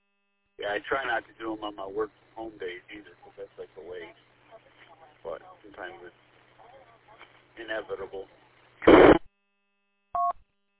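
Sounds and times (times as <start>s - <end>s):
speech: 0.6s - 6.3s, 7.6s - 9.0s
burst of noise: 8.8s - 9.2s
two-tone telephone beep signalling an incoming call: 10.2s - 10.4s.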